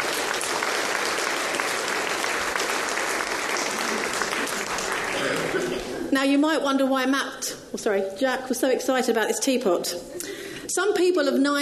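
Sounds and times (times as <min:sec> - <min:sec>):
audience applause: 0:00.0 - 0:06.0
speech: 0:06.2 - 0:11.5.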